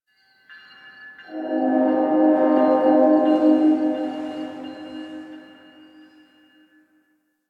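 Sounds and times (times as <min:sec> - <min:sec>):
distant train: 0:01.3 - 0:06.2.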